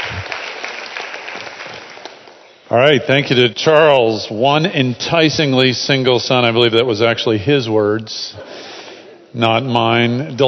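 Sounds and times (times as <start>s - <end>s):
church congregation at Crossroads applauding a guest speaker: 0.0s - 2.5s
speech: 2.7s - 8.7s, 9.3s - 10.4s.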